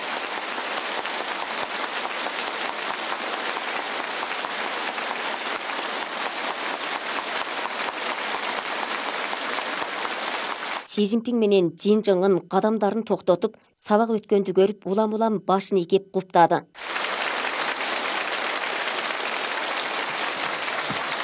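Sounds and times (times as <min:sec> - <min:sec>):
teachers and students applauding the arrival of two party leaders: 0:00.0 - 0:10.9, 0:16.8 - 0:21.2
speech: 0:11.0 - 0:16.9.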